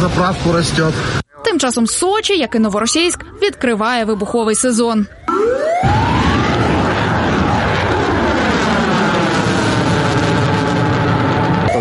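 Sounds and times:
speech: 0.0 - 6.1
air raid siren in resort city: 2.8 - 11.8.

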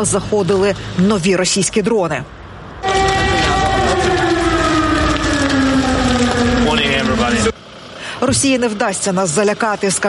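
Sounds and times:
speech: 0.0 - 2.4, 8.2 - 10.0
air raid warning siren wailing: 2.8 - 7.6.

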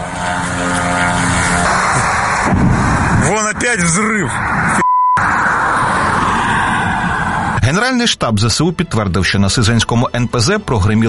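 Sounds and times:
attack drone flying overhead: 0.0 - 7.6
speech: 3.6 - 4.8, 7.7 - 11.0.

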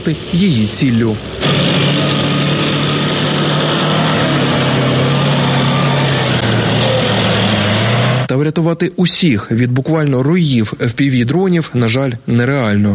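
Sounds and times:
speech: 0.0 - 2.1, 8.4 - 12.9
military vehicles driving along road: 0.0 - 8.3.

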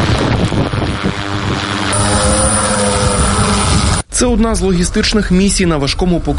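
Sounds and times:
heavy bomber drone propellers spinning up for takeoff: 0.0 - 4.1
speech: 4.2 - 6.3.

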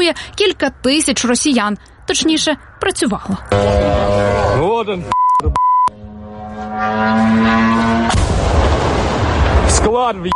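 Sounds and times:
speech: 0.1 - 5.7, 6.8 - 8.2, 9.7 - 10.3
drone engine buzzing: 3.5 - 8.5
electronic beep: 5.1 - 6.0
drone strike explosion on a warehouse: 8.0 - 10.0.

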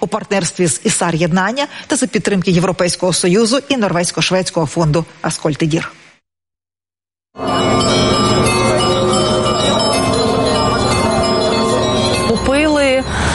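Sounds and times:
speech: 0.0 - 6.0
church bells ringing loudly: 7.4 - 13.3.

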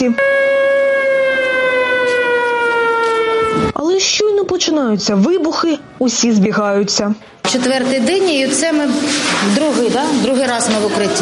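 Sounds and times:
speech: 0.0 - 0.4, 4.6 - 11.2
air raid siren wailing: 0.0 - 3.8.

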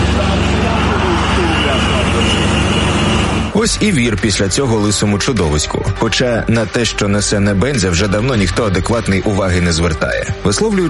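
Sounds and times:
traffic jam of cars at the Russian border crossing toward Georgia: 0.0 - 4.0
speech: 3.6 - 10.8.

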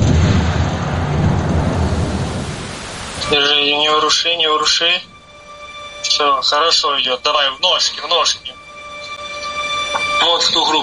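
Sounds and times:
artillery gun shot: 0.0 - 3.2
speech: 3.3 - 5.1, 6.2 - 8.6, 10.2 - 10.8.

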